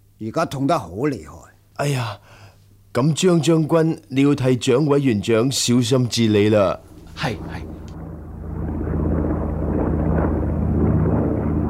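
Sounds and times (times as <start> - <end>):
speech: 0.2 - 7.8
military airplane flying overhead: 6.7 - 11.6.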